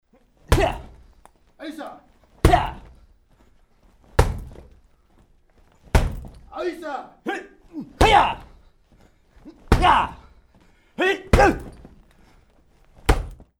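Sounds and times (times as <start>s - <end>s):
karate kicks and punches on a punching bag: 0.5s - 1.0s, 2.4s - 3.0s, 4.2s - 4.8s, 5.8s - 6.5s, 8.0s - 8.5s, 9.7s - 10.3s, 11.3s - 12.0s, 13.0s - 13.5s.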